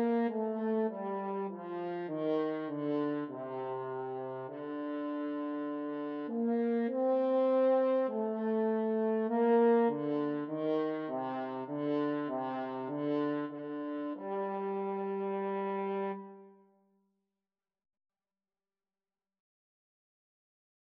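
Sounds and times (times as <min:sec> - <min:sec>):
french horn duet: 0:00.0 - 0:16.5.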